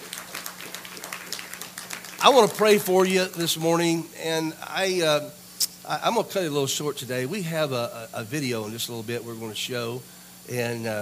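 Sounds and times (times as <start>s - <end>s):
audience clapping hands: 0.0s - 3.6s
speech: 2.2s - 11.0s.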